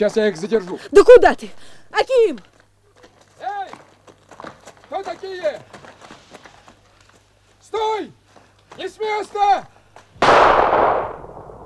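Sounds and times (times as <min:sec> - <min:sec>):
speech: 0:00.0 - 0:02.5, 0:04.4 - 0:06.2, 0:07.7 - 0:08.2, 0:08.8 - 0:09.7
gunshot fired into the air: 0:10.2 - 0:11.6.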